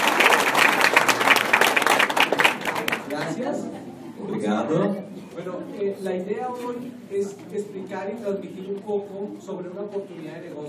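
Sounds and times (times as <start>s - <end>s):
audience applause: 0.0s - 3.3s
speech: 4.6s - 10.6s.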